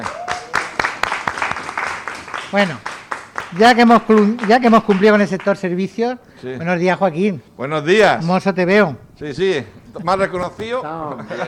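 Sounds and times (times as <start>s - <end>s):
applause: 0.0s - 5.6s
speech: 2.5s - 2.9s, 3.5s - 11.4s
laughter: 9.9s - 11.4s.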